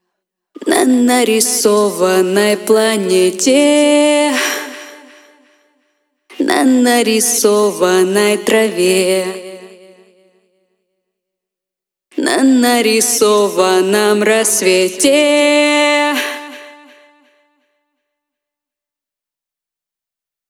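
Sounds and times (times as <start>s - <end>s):
a cappella singing: 0.6s - 5.6s, 6.3s - 10.4s, 12.1s - 17.6s.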